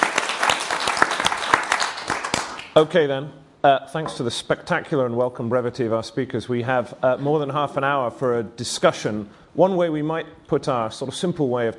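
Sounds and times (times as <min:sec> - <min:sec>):
audience applause: 0:00.0 - 0:02.7
speech: 0:02.8 - 0:11.7.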